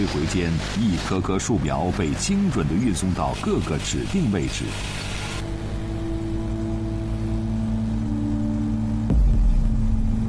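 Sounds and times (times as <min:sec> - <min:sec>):
speech: 0:00.0 - 0:05.1
drone propellers buzzing across a ravine: 0:00.0 - 0:10.2.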